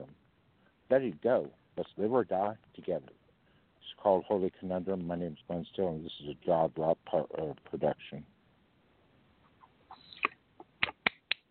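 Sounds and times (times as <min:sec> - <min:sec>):
speech: 0:00.9 - 0:03.2, 0:03.8 - 0:08.3
hand clapping: 0:10.2 - 0:11.4.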